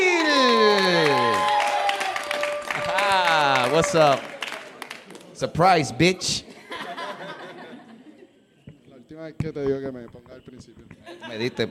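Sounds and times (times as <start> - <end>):
audience applause: 0.2 - 5.3
speech: 3.9 - 4.3, 5.4 - 6.5, 9.3 - 11.7
laughter: 6.4 - 8.5, 11.0 - 11.7.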